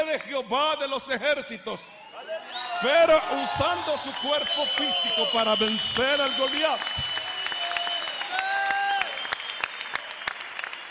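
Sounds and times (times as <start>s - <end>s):
speech: 0.0s - 7.1s
audience applauding: 2.8s - 10.8s.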